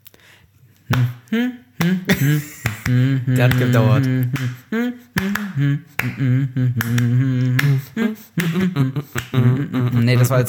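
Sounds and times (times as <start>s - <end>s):
hand clapping a tango rhythm: 0.8s - 9.6s
speech: 0.9s - 1.6s, 3.4s - 4.6s, 6.2s - 7.0s.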